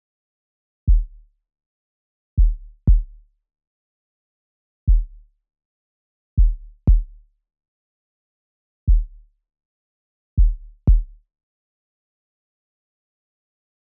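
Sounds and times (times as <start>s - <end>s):
kick drum at 60 bpm: 0.9s - 1.3s, 2.4s - 3.3s, 4.9s - 5.3s, 6.4s - 7.3s, 8.9s - 9.3s, 10.4s - 11.3s.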